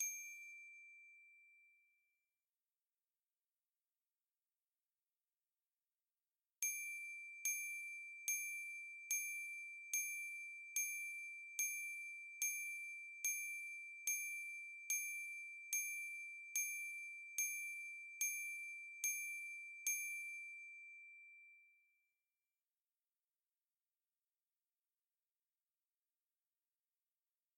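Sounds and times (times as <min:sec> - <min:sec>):
glockenspiel: 0:00.0 - 0:02.2, 0:06.6 - 0:22.0.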